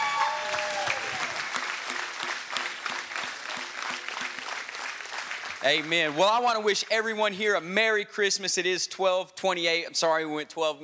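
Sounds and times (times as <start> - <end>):
audience clapping: 0.0 - 7.0
speech: 5.6 - 10.8.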